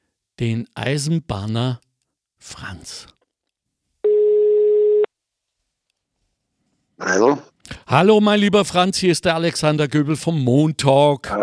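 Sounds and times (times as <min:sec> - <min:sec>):
speech: 0:00.4 - 0:01.8, 0:02.4 - 0:03.2, 0:07.0 - 0:11.4
telephone call ringing tone: 0:04.0 - 0:05.1.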